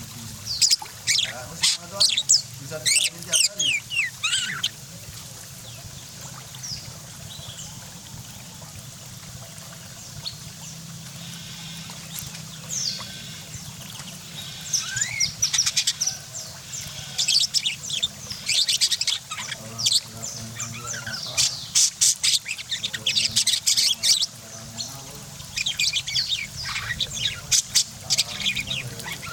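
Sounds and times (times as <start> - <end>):
parakeet chattering warbling song: 0.5 - 4.8, 14.2 - 29.3.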